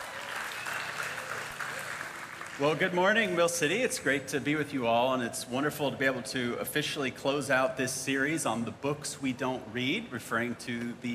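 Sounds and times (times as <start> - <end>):
audience applause: 0.0 - 3.0
speech: 2.6 - 11.1.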